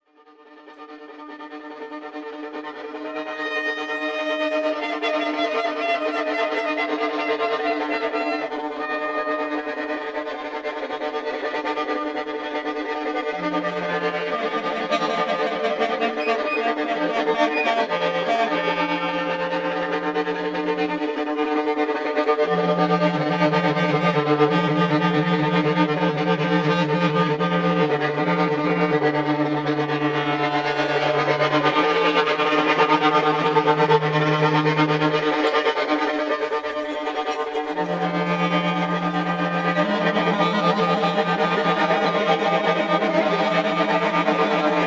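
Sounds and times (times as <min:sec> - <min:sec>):
drone: 0:00.7 - 0:44.8.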